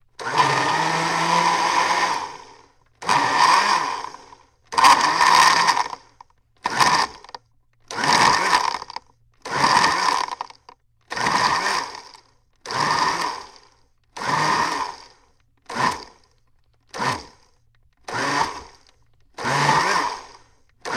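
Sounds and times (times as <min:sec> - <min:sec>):
blender making ice cream: 0:00.2 - 0:16.2, 0:17.0 - 0:17.4, 0:18.1 - 0:20.9.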